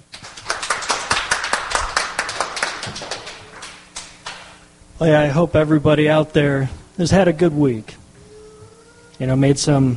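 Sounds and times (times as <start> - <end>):
audience clapping: 0.1 - 4.6
speech: 5.0 - 7.9, 9.2 - 9.9.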